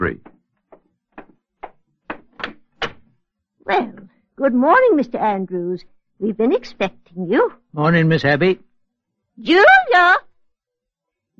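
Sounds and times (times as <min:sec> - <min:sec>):
speech: 0:00.0 - 0:00.2, 0:03.7 - 0:08.7, 0:09.4 - 0:10.2
front door opening: 0:00.0 - 0:03.2.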